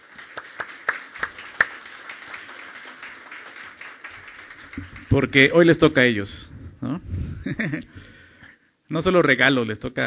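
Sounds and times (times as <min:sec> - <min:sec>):
crowd applause: 0:00.0 - 0:05.8
speech: 0:05.1 - 0:06.5, 0:07.5 - 0:08.2, 0:08.9 - 0:10.0.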